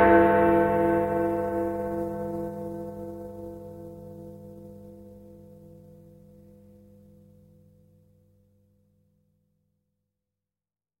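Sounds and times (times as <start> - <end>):
Big Ben clock bell chiming: 0.0 - 5.0.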